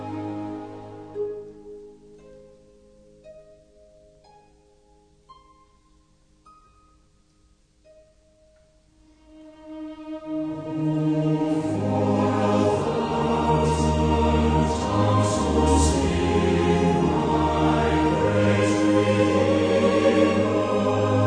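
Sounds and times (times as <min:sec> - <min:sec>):
choir: 0:00.0 - 0:01.2, 0:09.9 - 0:21.2
orchestra: 0:00.0 - 0:03.4, 0:09.1 - 0:21.2.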